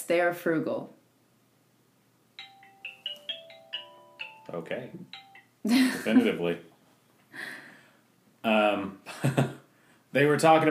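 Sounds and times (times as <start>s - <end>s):
speech: 0.1s - 1.0s, 4.5s - 6.7s, 8.4s - 10.6s
phone alarm sound going off: 2.4s - 5.6s.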